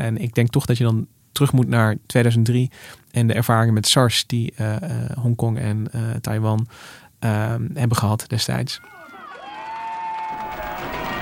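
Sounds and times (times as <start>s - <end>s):
speech: 0.0s - 9.0s
crowd cheering in Taiwan at a celebration marking the end of SARS cases: 8.8s - 11.1s
high whoop: 8.8s - 11.1s.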